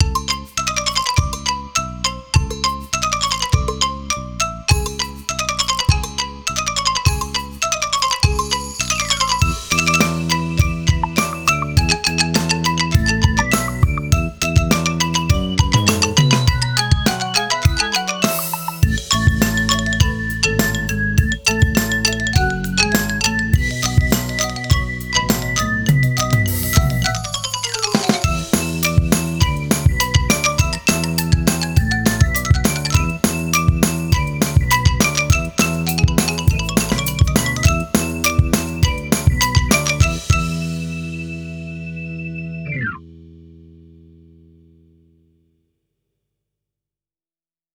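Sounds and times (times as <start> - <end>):
instrumental music: 0.0 - 44.6.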